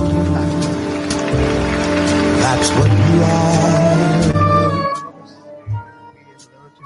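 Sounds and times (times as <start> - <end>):
recorded pop song with vocal duet: 0.0 - 1.2, 2.3 - 5.6
speech: 2.5 - 3.8.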